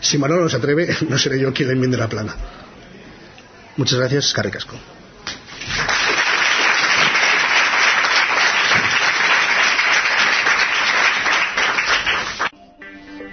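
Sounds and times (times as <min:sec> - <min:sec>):
speech: 0:00.1 - 0:02.6, 0:03.8 - 0:05.0
audience applause after a conference: 0:05.6 - 0:12.5.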